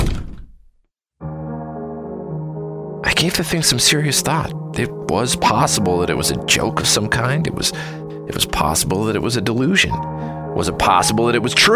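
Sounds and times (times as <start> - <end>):
bathroom door closing: 0.0 - 0.6
speech: 3.2 - 11.7.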